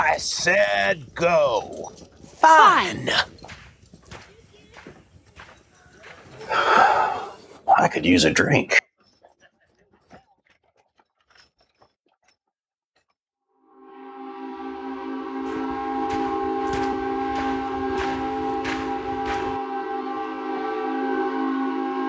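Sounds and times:
speech: 0.1 - 3.4, 6.5 - 7.1, 7.8 - 8.8
steamboat whistle: 13.9 - 22.0.

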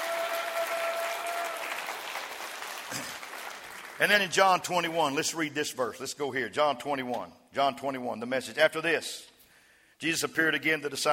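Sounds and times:
audience clapping hands: 0.0 - 4.5
speech: 2.9 - 3.2, 4.0 - 9.3, 10.0 - 11.1.

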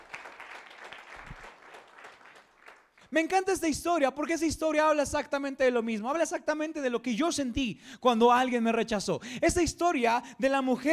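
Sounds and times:
audience applause: 0.0 - 3.0
speech: 3.1 - 10.9.

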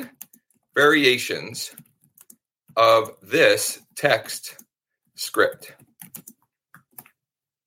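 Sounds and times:
typing a prompt for Bard on a computer keyboard: 0.0 - 0.7, 1.7 - 3.2, 4.5 - 7.2
speech: 0.8 - 1.8, 2.8 - 4.6, 5.2 - 6.3.

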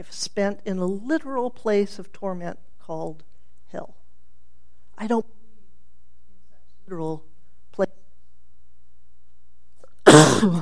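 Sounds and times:
speech: 0.0 - 4.0, 5.0 - 5.4, 6.9 - 8.0, 10.1 - 10.6
sneeze from allergies: 10.0 - 10.6.

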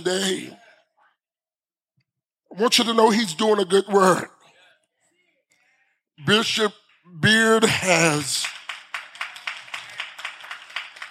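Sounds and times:
speech: 0.0 - 0.6, 2.5 - 4.3, 6.2 - 8.6
hand claps: 8.3 - 11.0.

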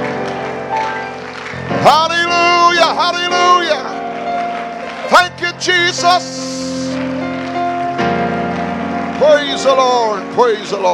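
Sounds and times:
audience clapping: 0.0 - 10.9
speech: 5.1 - 6.7, 9.3 - 10.9.

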